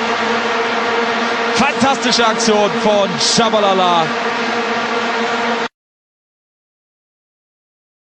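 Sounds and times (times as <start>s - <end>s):
vuvuzela blowing: 0.0s - 5.7s
commentator speaking: 1.5s - 4.3s.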